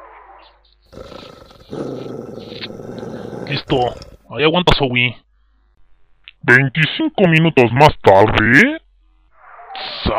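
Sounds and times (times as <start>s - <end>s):
angry dog growling and snarling: 0.9s - 4.3s
speech: 3.5s - 5.2s, 6.4s - 8.8s, 9.8s - 10.1s.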